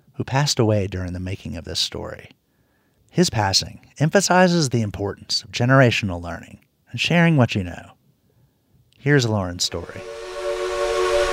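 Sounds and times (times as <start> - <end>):
speech: 0.2 - 2.4, 3.1 - 8.0, 9.0 - 10.2
steam whistle of 1920s Heisler No. 6 locomotive Durbin Rocket: 9.6 - 11.3.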